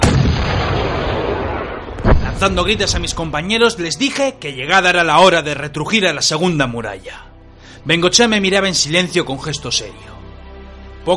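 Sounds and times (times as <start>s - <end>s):
continuous crackle of gunfire sound effect: 0.0s - 3.2s
speech: 2.4s - 10.2s.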